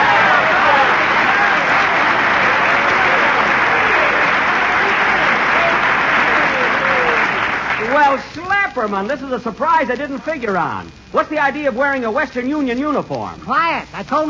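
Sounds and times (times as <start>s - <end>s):
audience applause: 0.0s - 8.3s
speech: 8.8s - 14.2s.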